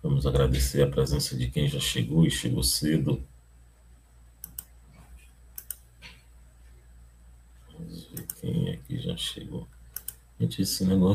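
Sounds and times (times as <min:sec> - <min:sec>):
low steady hum: 0:00.0 - 0:11.1
speech: 0:00.2 - 0:03.3, 0:09.2 - 0:09.8, 0:10.4 - 0:11.1
computer mouse clicks: 0:04.4 - 0:04.8, 0:05.5 - 0:06.2, 0:08.1 - 0:08.4, 0:09.9 - 0:10.2.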